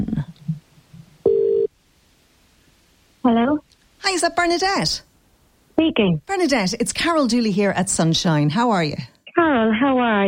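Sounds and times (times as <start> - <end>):
electronic telephone tone from an outgoing call to Lucan: 1.3 - 1.7
speech: 3.2 - 5.1, 5.8 - 10.2.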